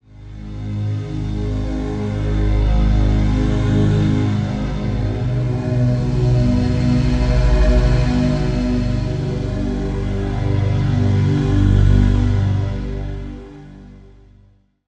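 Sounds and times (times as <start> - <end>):
synth pad: 0.0 - 14.4.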